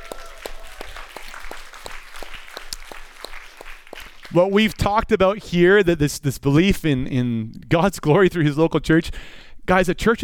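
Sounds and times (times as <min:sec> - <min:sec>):
crowd cheering: 0:00.0 - 0:04.4
speech: 0:04.3 - 0:10.2.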